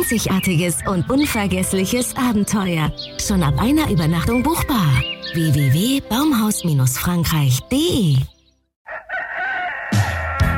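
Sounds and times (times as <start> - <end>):
speech: 0.0 - 8.3
rooster crowing: 8.8 - 10.5.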